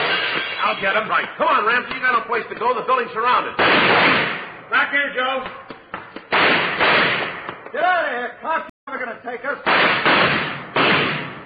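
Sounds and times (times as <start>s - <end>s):
speech: 0.7s - 5.6s, 7.7s - 10.5s
gunshots in a radio drama shootout: 3.5s - 4.7s, 6.2s - 7.6s, 9.6s - 11.4s.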